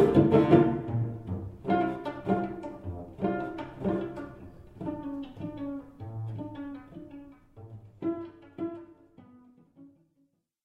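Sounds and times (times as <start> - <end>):
cello: 0.0 - 10.4.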